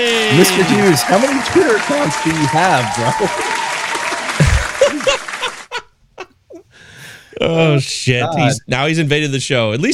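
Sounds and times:
speech: 0:00.0 - 0:03.6, 0:07.4 - 0:09.9
dense applause: 0:00.0 - 0:05.7
whoops: 0:01.8 - 0:04.9
laughter: 0:04.4 - 0:06.6.

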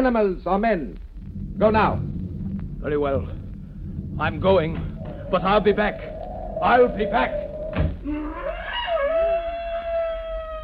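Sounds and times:
speech: 0:00.0 - 0:02.1, 0:02.8 - 0:03.4, 0:04.2 - 0:08.6
low rumble: 0:00.0 - 0:08.6
black panthers screaming: 0:04.3 - 0:10.6.

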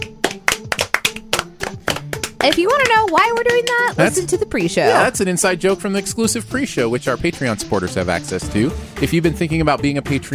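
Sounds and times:
people clapping hands: 0:00.0 - 0:05.1
speech: 0:02.4 - 0:10.3.

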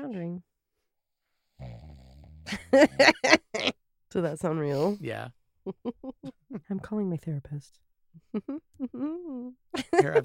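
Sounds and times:
fart: 0:01.6 - 0:02.5
laughter: 0:02.5 - 0:03.7, 0:09.8 - 0:10.2
speech: 0:02.5 - 0:10.2.

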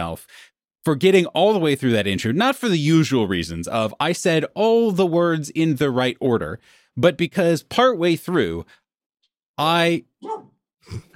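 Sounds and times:
speech: 0:00.0 - 0:08.8, 0:09.6 - 0:11.1
dog barking: 0:10.2 - 0:10.5.

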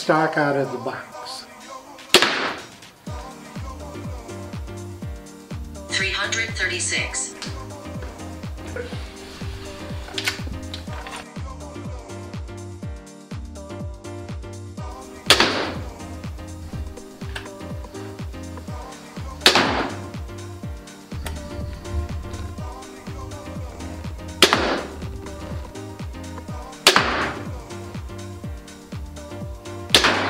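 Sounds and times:
speech: 0:00.0 - 0:01.4, 0:06.2 - 0:07.3, 0:08.7 - 0:09.1
stock Wicked Ridge M370 crossbow firing during a speed test: 0:02.0 - 0:02.7, 0:10.1 - 0:11.3, 0:17.2 - 0:17.5, 0:24.4 - 0:24.9
steady tonal background: 0:05.7 - 0:11.3, 0:14.9 - 0:29.9.

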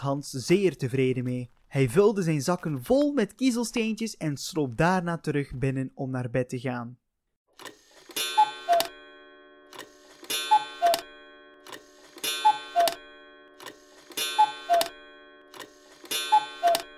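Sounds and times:
speech: 0:00.0 - 0:07.0
cuckoo clock calling: 0:07.6 - 0:16.9.

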